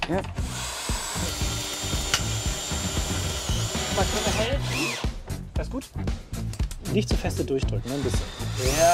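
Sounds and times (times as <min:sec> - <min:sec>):
speech: 0:00.1 - 0:00.7, 0:04.0 - 0:06.3, 0:06.9 - 0:08.9
power drill driving screws into wooden boards: 0:00.4 - 0:05.2, 0:07.8 - 0:08.9.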